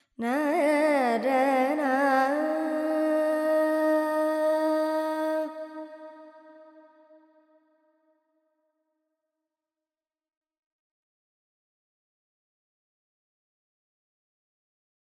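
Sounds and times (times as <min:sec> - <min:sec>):
Carnatic female vocal alap in Lydian mode with effects: 0:00.2 - 0:07.2.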